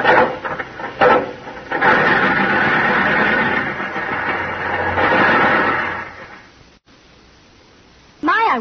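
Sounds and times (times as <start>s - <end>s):
old car engine being cranked by hand: 0.0s - 6.3s
metallic clanks: 0.0s - 6.4s.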